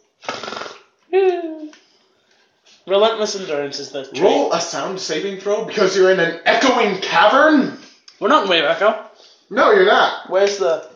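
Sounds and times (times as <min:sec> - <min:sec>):
person imitating loud snoring: 0:00.2 - 0:00.9
speech: 0:02.9 - 0:10.9.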